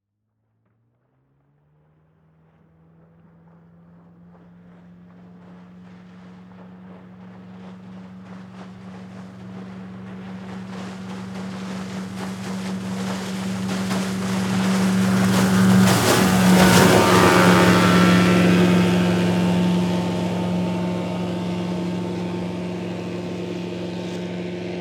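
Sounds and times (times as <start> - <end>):
dive raft passing by fast: 4.9 - 24.7.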